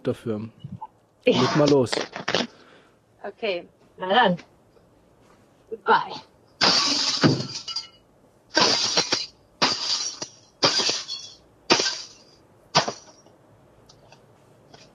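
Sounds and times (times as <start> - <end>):
speech: 0.0 - 2.2, 3.2 - 4.5, 5.7 - 6.3
baseball bat smashing something to pieces: 6.6 - 13.2.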